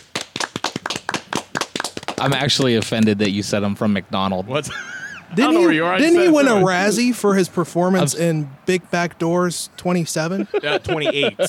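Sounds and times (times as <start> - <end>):
audience applause: 0.1 - 3.2
speech: 2.2 - 11.4
laughter: 4.6 - 6.4, 10.2 - 11.4.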